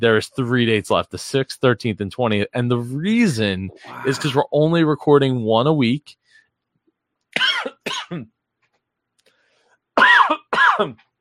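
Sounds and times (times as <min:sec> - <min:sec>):
speech: 0:00.0 - 0:06.2, 0:07.4 - 0:08.4, 0:10.0 - 0:11.1
person coughing after something went down the wrong pipe: 0:03.8 - 0:04.4, 0:07.4 - 0:08.3, 0:10.0 - 0:11.0.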